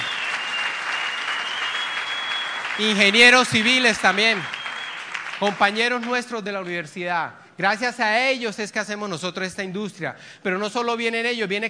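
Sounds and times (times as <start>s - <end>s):
audience applause: 0.0s - 6.2s
speech: 2.8s - 4.6s, 5.4s - 11.6s.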